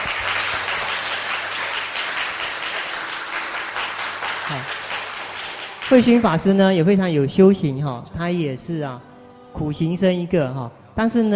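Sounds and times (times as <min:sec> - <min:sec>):
audience applause: 0:00.0 - 0:06.5
speech: 0:05.9 - 0:11.3.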